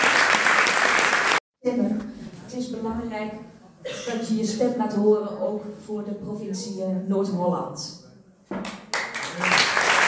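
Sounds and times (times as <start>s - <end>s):
audience applause: 0.0s - 1.4s, 8.9s - 10.0s
speech: 1.6s - 8.8s.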